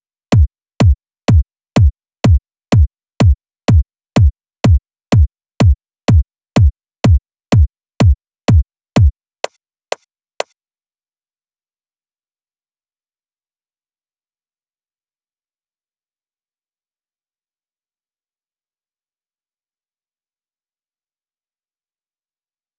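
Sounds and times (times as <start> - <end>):
kick drum loop: 0.0 - 9.1.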